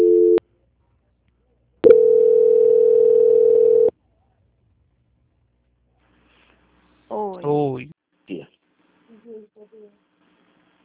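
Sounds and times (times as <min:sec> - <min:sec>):
dual-pitched telephone line tone after a call drops: 0:00.0 - 0:00.4, 0:01.8 - 0:03.9.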